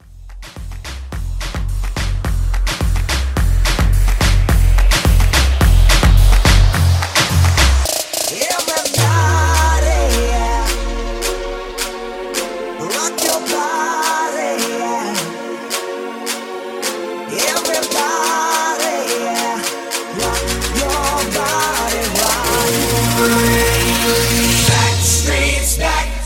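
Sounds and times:
moombahton bootleg music: 0.0s - 26.2s.

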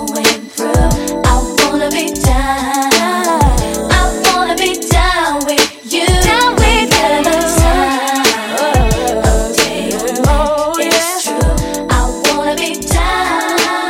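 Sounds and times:
90s RnB beat at 90 BPM: 0.0s - 13.8s.

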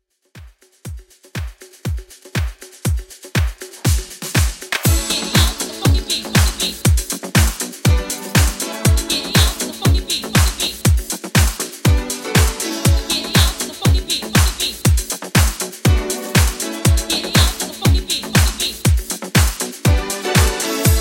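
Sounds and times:
80s funky drum beat: 0.3s - 20.9s.

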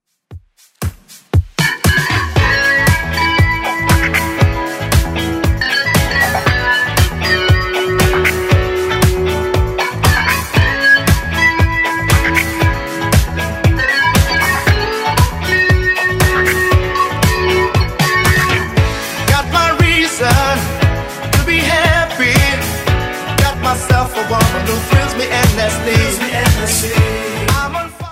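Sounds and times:
70s-style music track at 117 bpm: 0.8s - 28.1s.

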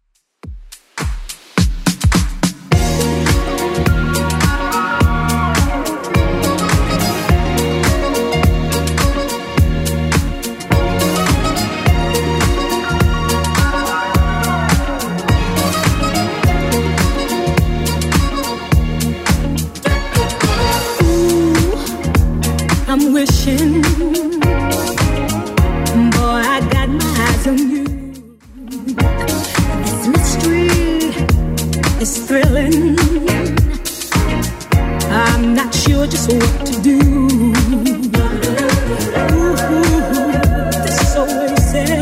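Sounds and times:
1980s club music at 105 bpm: 0.5s - 42.0s.

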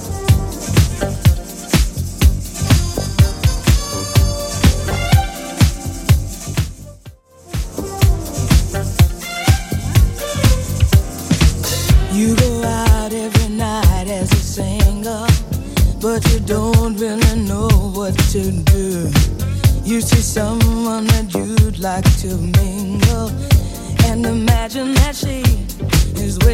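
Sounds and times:
70s style drum machine beat: 0.0s - 26.5s.

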